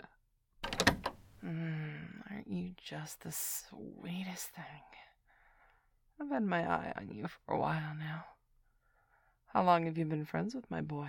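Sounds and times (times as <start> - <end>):
door being locked: 0.6 - 1.4
speech: 2.9 - 5.1, 6.2 - 8.3, 9.5 - 11.0.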